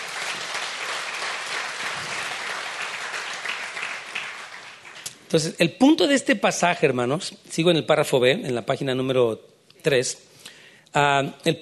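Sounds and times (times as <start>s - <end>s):
audience applause: 0.0s - 5.1s
speech: 5.3s - 10.3s, 10.9s - 11.6s.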